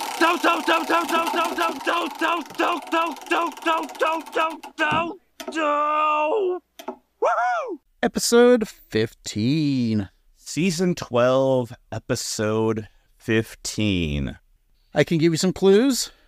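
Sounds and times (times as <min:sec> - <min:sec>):
wheel spun to pick an episode: 0:00.0 - 0:04.9
speech: 0:00.2 - 0:16.2.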